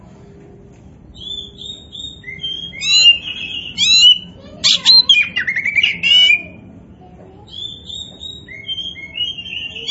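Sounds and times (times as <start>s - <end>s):
Oriental magpie-robin whistling and twittering: 1.1s - 6.6s, 7.5s - 9.8s.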